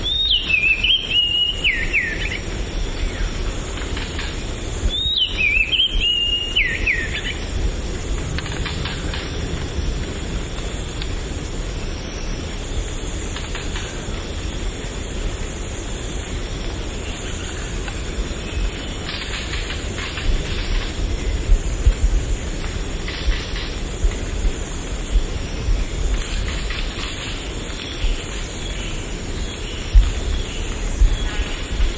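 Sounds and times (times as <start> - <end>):
elegant sunbird song: 0.0 - 31.9.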